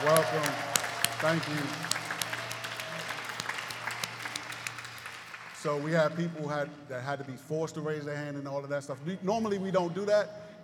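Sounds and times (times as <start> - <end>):
speech: 0.0 - 2.0, 5.6 - 10.6
audience clapping: 0.0 - 6.8.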